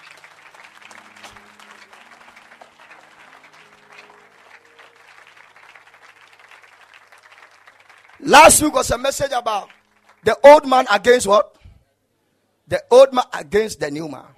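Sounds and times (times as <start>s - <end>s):
audience clapping: 0.0s - 11.1s
speech: 8.2s - 11.6s, 12.7s - 14.3s.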